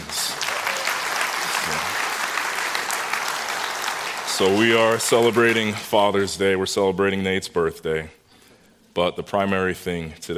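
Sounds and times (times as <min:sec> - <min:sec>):
audience applause: 0:00.0 - 0:06.0
speech: 0:04.4 - 0:08.2, 0:09.0 - 0:10.3.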